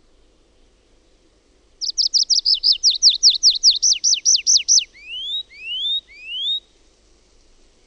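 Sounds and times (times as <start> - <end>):
tree pipit singing: 1.8 - 6.7.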